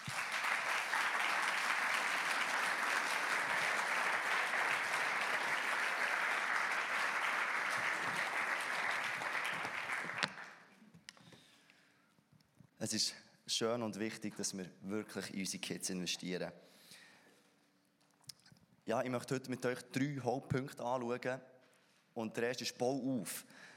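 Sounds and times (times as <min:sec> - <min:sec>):
audience applause: 0:00.0 - 0:10.6
speech: 0:12.9 - 0:16.8, 0:18.9 - 0:21.5, 0:22.2 - 0:23.7.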